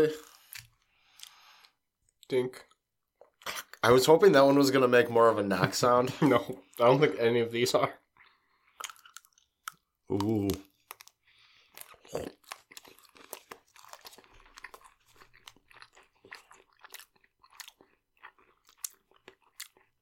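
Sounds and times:
speech: 0.0 - 0.3, 2.3 - 2.7, 3.5 - 8.0, 10.1 - 10.7, 12.1 - 12.4
chewing a caramel peanut candy bar: 0.1 - 3.8, 8.0 - 20.0.

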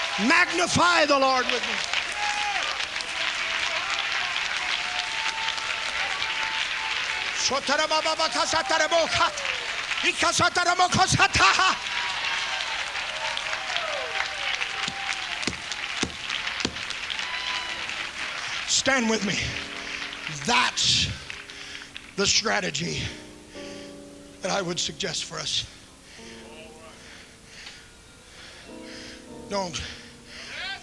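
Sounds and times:
audience clapping: 0.0 - 22.5
speech: 0.2 - 2.0, 7.5 - 11.9, 18.8 - 19.8, 20.4 - 21.2, 22.2 - 23.2, 24.4 - 25.8, 29.5 - 30.0.

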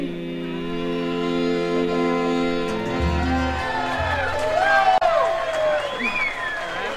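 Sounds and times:
sustained musical chord: 0.2 - 4.2
studio audience clapping and cheering: 2.7 - 6.9.

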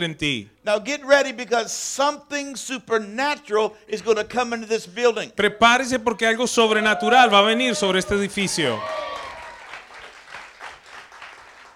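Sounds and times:
speech: 0.0 - 9.0
polite golf-style applause from a group: 6.6 - 11.7.

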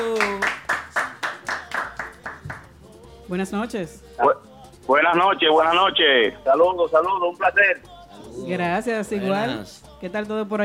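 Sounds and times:
applause: 0.0 - 2.7
speech: 3.3 - 10.6.

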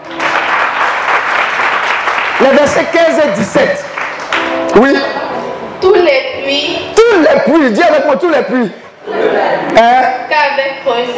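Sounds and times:
church congregation applauding: 0.0 - 5.0
speech: 2.4 - 4.0, 4.7 - 5.2, 5.8 - 11.1.

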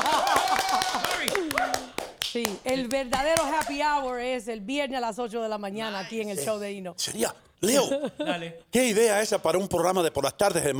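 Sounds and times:
clapping: 0.0 - 3.8
speech: 2.3 - 10.7.

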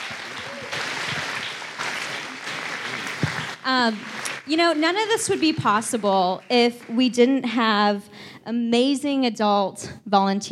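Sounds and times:
audience applauding: 0.0 - 7.2
speech: 3.6 - 10.4.

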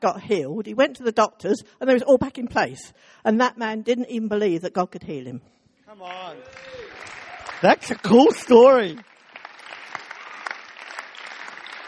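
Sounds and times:
speech: 0.0 - 9.1
weak golf clap applause: 6.0 - 11.8.

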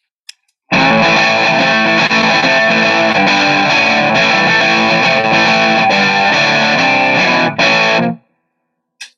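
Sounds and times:
electric guitar chords through a Top Boost amp model: 0.7 - 8.2.

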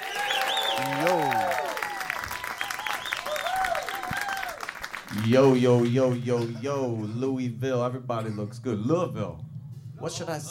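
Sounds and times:
audience applauding and cheering at a live lunch concert in Louisville: 0.0 - 6.5
speech: 5.2 - 9.4, 10.0 - 10.4.

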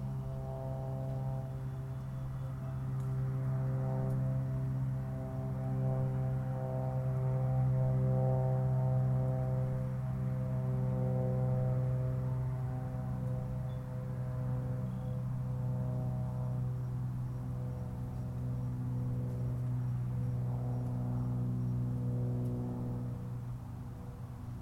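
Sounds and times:
low engine-like drone on a golf course: 0.0 - 24.6
faint ticks and rustles: 3.0 - 3.2, 18.1 - 21.1.

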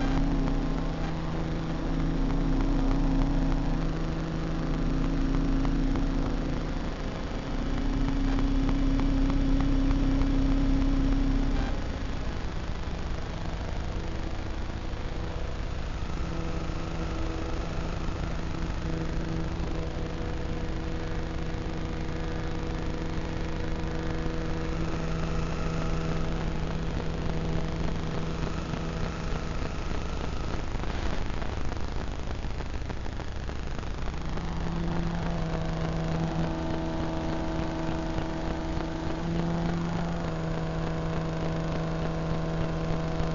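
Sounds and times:
electromagnetic fields turned into sound, engine-like hum of stacked buzzing tones: 0.0 - 43.3.

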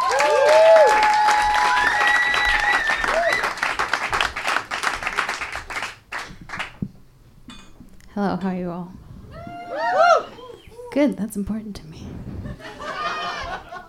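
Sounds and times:
audience applause for comedian: 0.0 - 6.8
speech: 8.2 - 9.0, 10.9 - 12.0
laughter: 12.4 - 13.8.

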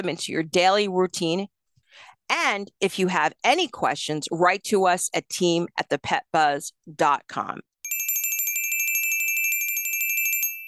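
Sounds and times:
speech: 0.0 - 7.7
bells ringing: 7.9 - 10.6.

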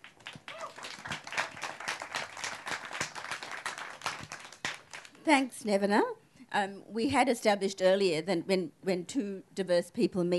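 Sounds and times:
audience applause welcoming a speaker: 0.0 - 5.1
speech: 5.2 - 10.3.

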